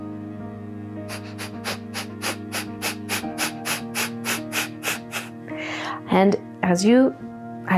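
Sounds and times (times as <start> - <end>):
rapid forceful exhales: 1.1 - 5.8
speech: 6.1 - 7.7.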